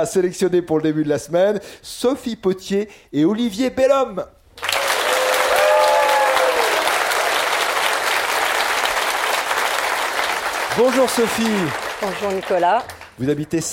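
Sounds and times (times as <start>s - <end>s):
speech: 0.0s - 4.4s, 10.8s - 13.7s
audience applauding warmly in the salle polyvalente: 4.6s - 13.7s.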